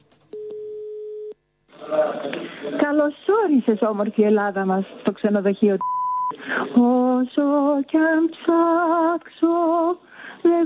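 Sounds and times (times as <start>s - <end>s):
telephone line tone on a call to a hotel in Piraeus, Greece: 0.3s - 1.4s
speech: 2.3s - 10.6s.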